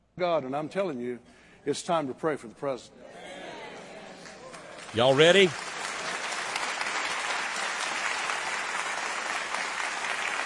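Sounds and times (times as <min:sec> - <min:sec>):
speech: 0:00.2 - 0:03.2, 0:04.9 - 0:05.7
audience clapping: 0:04.2 - 0:10.4.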